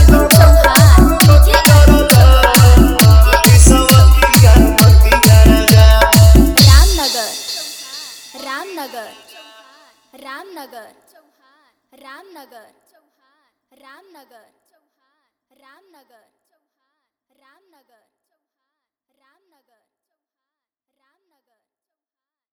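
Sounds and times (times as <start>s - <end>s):
Bhojpuri song with hard bass: 0.0s - 9.2s.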